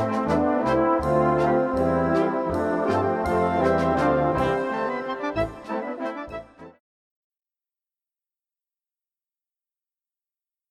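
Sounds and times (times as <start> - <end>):
waltz music: 0.0 - 6.8.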